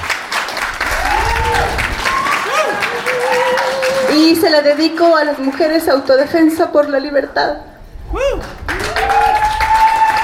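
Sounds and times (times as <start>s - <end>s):
crowd clapping: 0.0s - 7.0s, 8.3s - 10.2s
cheers and whoops: 0.8s - 4.4s, 8.1s - 10.2s
speech: 4.3s - 8.6s.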